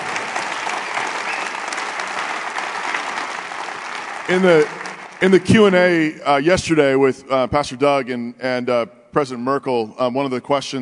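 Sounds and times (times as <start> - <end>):
audience clapping: 0.0 - 6.0
speech: 4.3 - 10.7.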